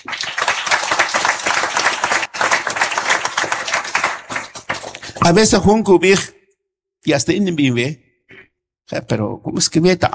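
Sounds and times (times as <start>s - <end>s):
applause: 0.0s - 5.6s
speech: 5.2s - 6.3s, 7.0s - 8.0s, 8.9s - 10.1s.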